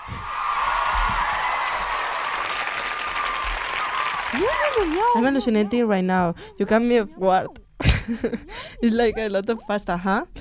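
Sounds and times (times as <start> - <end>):
crowd applause: 0.0 - 5.5
speech: 4.3 - 10.3.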